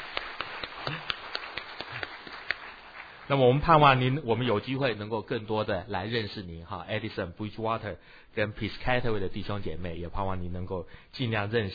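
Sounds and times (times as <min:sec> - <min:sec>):
church congregation clapping to welcome three newcomers: 0:00.0 - 0:04.2
speech: 0:03.3 - 0:11.7.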